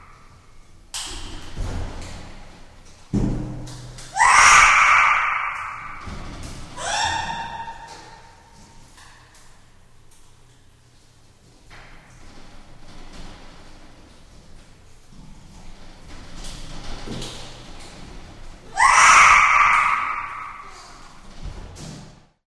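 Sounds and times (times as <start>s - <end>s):
monkeys calling: 4.2s - 8.4s, 18.7s - 21.2s.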